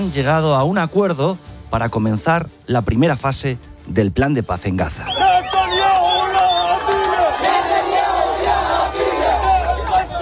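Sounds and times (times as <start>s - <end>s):
speech: 0.0s - 5.5s
large crowd shouting with joy in streets: 5.0s - 10.2s.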